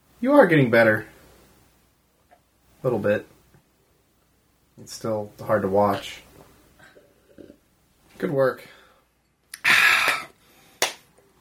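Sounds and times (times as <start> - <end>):
speech: 0.2 - 1.1, 2.8 - 3.3, 4.8 - 6.2, 8.2 - 8.8
slow hand claps: 9.6 - 11.1.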